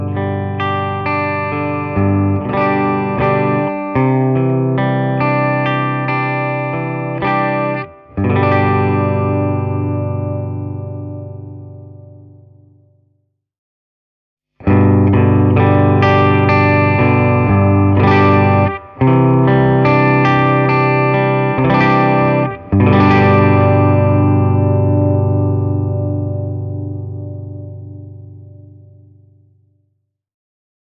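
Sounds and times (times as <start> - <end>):
electric guitar through clean amplifier channel with reverb and boost: 0.0 - 12.7, 14.6 - 29.5.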